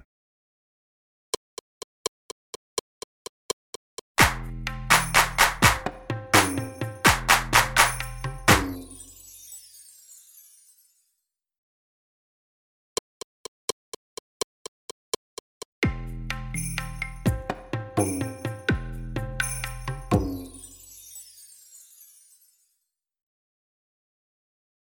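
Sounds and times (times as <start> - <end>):
street percussion beat: 1.4 - 9.2, 13.1 - 20.8.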